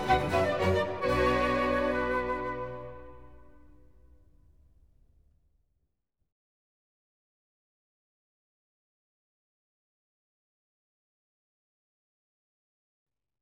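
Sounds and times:
orchestral suite in B minor: 0.0s - 3.8s.

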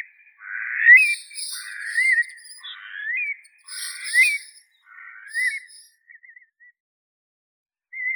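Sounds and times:
slender-billed curlew Numenius tenuirostris: 1.0s - 2.7s, 3.6s - 4.6s, 5.3s - 5.9s.

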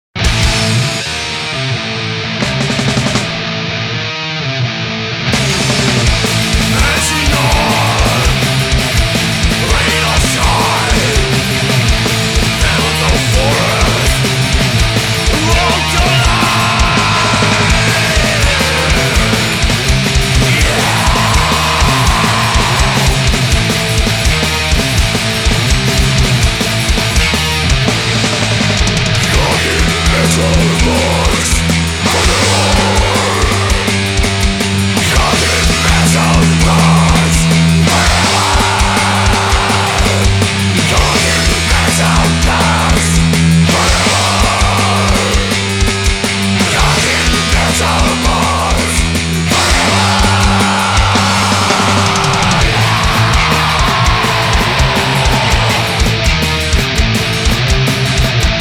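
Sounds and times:
punk metal music: 0.1s - 58.5s.

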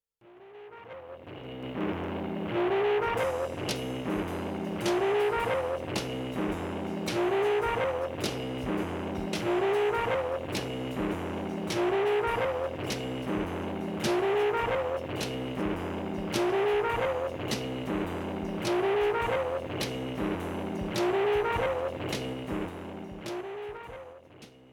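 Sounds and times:
jazz loop: 1.7s - 24.7s.

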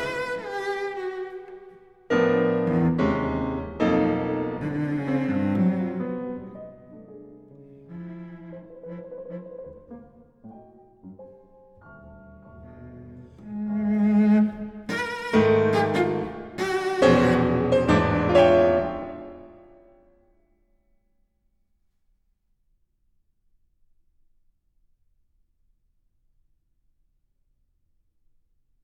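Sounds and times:
cello sonata played very agitated: 0.0s - 19.9s.

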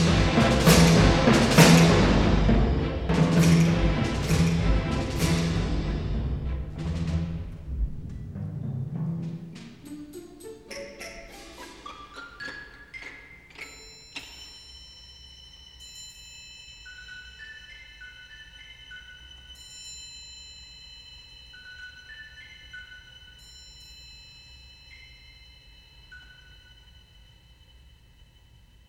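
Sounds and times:
orchestra playing: 0.0s - 13.4s
orchestral percussion playing moderato: 0.0s - 28.7s.

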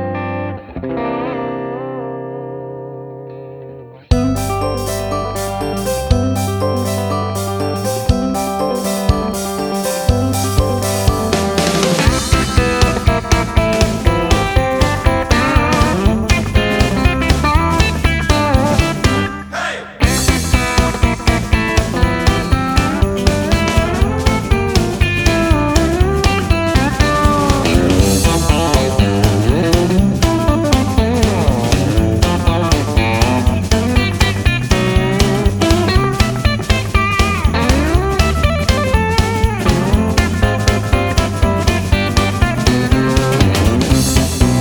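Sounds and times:
instrumental Christmas song: 0.1s - 44.5s.

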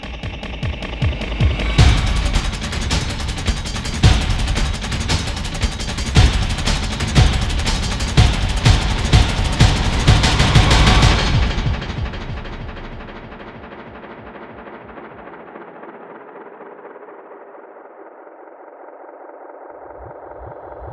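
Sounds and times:
drums remix: 0.0s - 15.6s.

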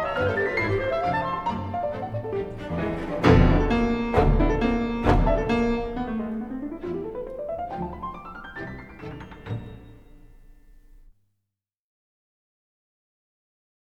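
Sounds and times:
piano concerto in B major, vivace: 0.0s - 11.1s.

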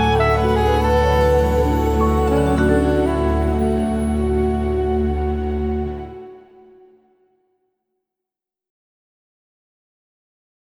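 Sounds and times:
instrumental music: 0.0s - 7.1s.

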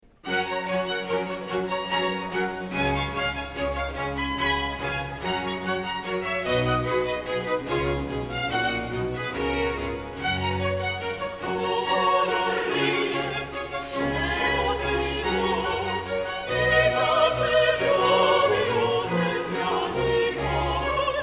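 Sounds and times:
choir singing: 0.3s - 21.2s.

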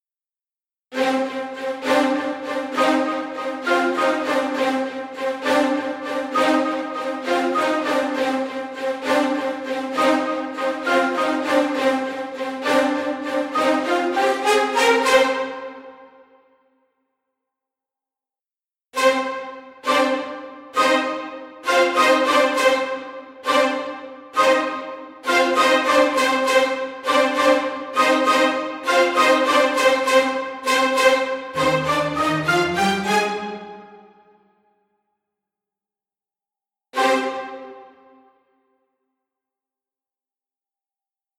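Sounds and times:
high brass staccato tutti: 0.9s - 16.1s, 19.0s - 34.4s, 37.0s - 38.2s.

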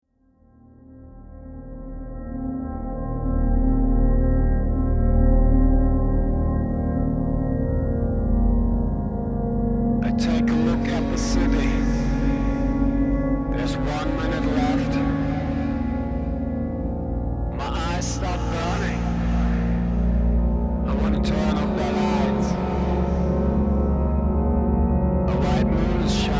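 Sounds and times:
ambient music: 0.5s - 26.3s.

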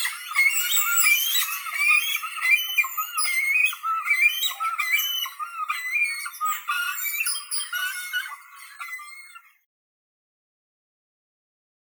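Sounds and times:
great cormorant Phalacrocorax carbo calling: 0.0s - 9.5s.

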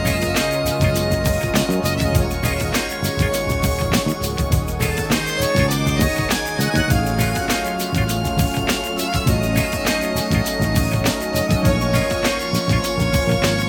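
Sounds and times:
noise mix: 0.0s - 13.6s.

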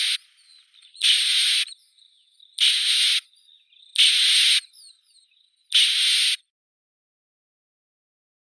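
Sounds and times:
blue tit Cyanistes caeruleus: 0.0s - 6.4s.

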